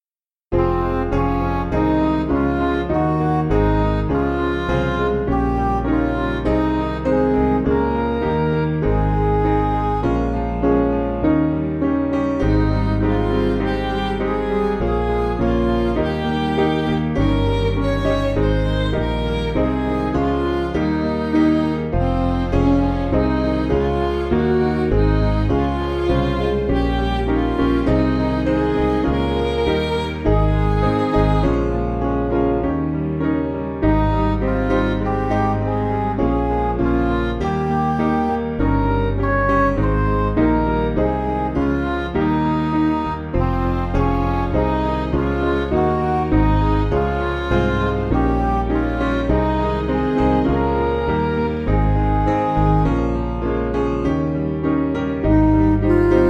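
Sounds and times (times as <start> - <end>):
backing music for churches: 0.6 - 56.2.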